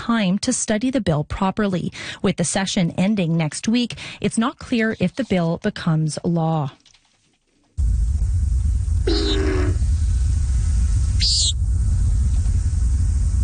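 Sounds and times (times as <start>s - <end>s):
speech: 0.1s - 6.9s
common nighthawk wing boom: 7.8s - 13.4s
low rumbling background: 7.8s - 13.4s
common nighthawk calls: 9.1s - 9.8s, 11.2s - 11.6s.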